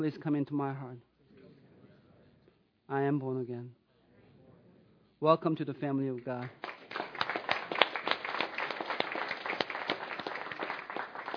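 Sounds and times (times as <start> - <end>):
speech: 0.0 - 1.1, 2.9 - 3.8, 5.2 - 6.7
audience clapping: 6.3 - 11.3.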